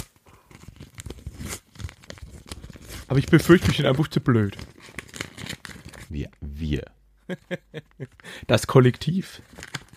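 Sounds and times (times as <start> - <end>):
paper envelope being torn open: 0.0 - 6.1, 9.4 - 9.9
speech: 3.1 - 5.0, 6.1 - 9.6.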